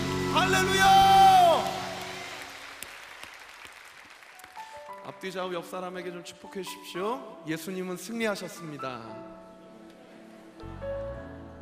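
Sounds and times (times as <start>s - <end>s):
speech: 0.4s - 1.0s, 5.2s - 9.4s
audience applause: 1.0s - 5.0s.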